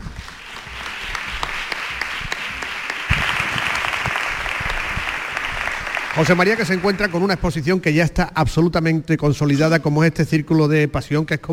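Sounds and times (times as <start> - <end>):
audience applause: 0.0 - 7.7
speech: 6.2 - 11.5.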